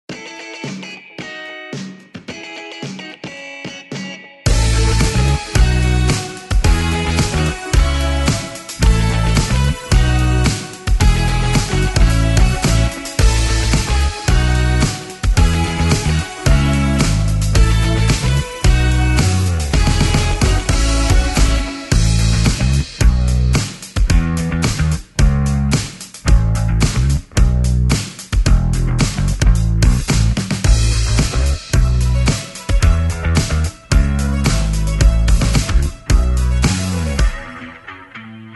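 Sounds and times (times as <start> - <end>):
rock pop music: 0.1 - 38.5.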